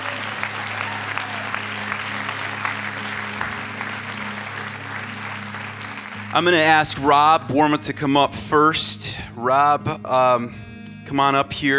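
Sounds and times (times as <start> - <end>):
audience clapping: 0.0 - 7.6
speech: 6.3 - 11.7.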